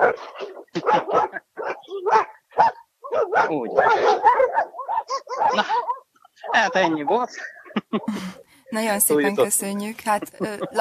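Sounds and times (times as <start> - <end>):
dogs barking: 0.0 - 8.1
laughter: 0.7 - 1.5, 5.4 - 5.9, 6.5 - 10.8
speech: 3.5 - 4.3, 6.6 - 10.8.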